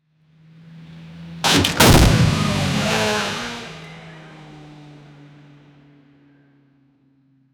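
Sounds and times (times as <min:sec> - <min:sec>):
sports car crash: 0:01.4 - 0:04.2.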